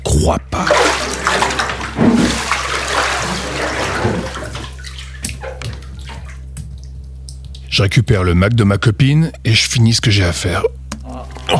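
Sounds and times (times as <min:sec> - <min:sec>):
water sloshing and splashing in a bathtub: 0:00.0 - 0:07.8
speech: 0:00.2 - 0:00.9, 0:07.8 - 0:10.8.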